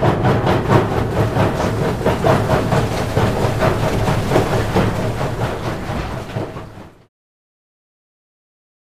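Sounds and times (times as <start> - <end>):
rock crusher running in a factory: 0.2 - 7.1.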